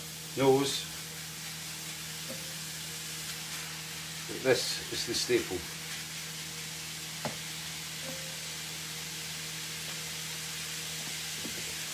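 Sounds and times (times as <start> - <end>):
mince sizzling in a pan for mince and tatties: 0.0 - 11.9
speech: 0.4 - 1.0, 4.3 - 5.8.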